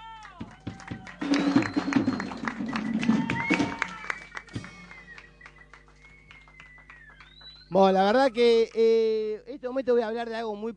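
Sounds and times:
audience applause for a band: 0.0s - 8.5s
speech: 7.8s - 10.7s.

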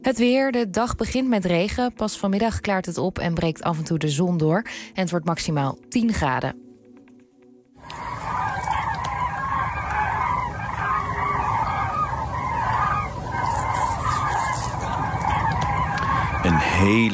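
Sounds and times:
speech: 0.0s - 6.6s, 16.5s - 17.1s
flock of common cranes calling over Noorbeek, Zuid-Limburg: 7.8s - 17.1s.

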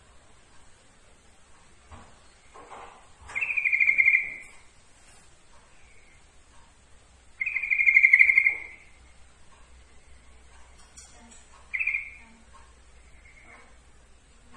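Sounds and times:
yellow-vented bulbul giving bright notes: 3.3s - 4.7s, 7.4s - 9.0s, 11.7s - 12.4s.

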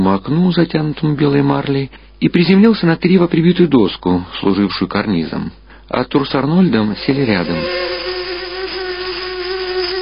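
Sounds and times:
speech: 0.0s - 8.0s
insect wings whining: 7.2s - 10.0s.

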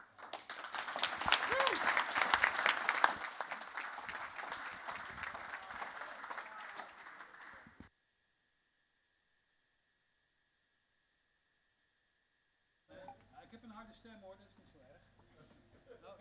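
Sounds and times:
audience applause welcoming musicians at a jazz concert: 0.0s - 7.9s.

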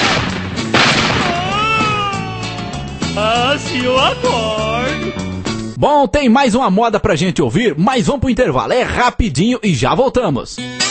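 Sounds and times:
gunshot sound effect: 0.0s - 2.0s
speech: 3.5s - 10.8s.

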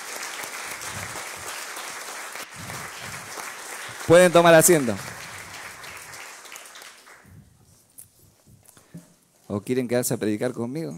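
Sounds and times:
church audience applauding: 0.0s - 7.4s
speech: 4.1s - 5.1s, 9.6s - 10.9s.

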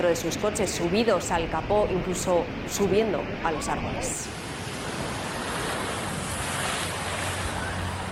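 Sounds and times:
speech: 0.0s - 4.5s
rushing floodwater in city streets: 3.6s - 8.1s.

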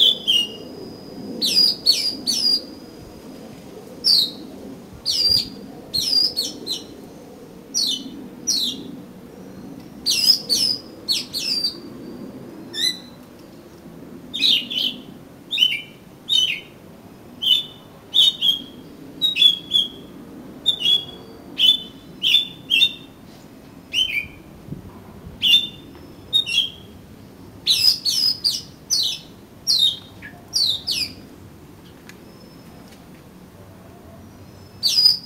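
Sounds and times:
Oriental magpie-robin singing: 0.0s - 2.8s, 4.0s - 4.4s, 5.0s - 7.0s, 7.7s - 8.9s, 10.0s - 13.2s, 14.3s - 16.8s, 17.4s - 23.1s, 23.9s - 24.4s, 25.4s - 27.0s, 27.6s - 31.2s, 34.5s - 35.2s.

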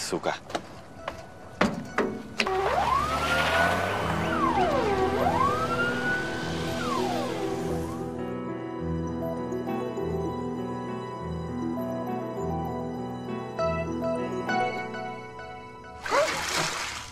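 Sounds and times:
droning tonal music: 0.9s - 16.0s
bucket of water thrown over a woman: 16.0s - 17.0s.

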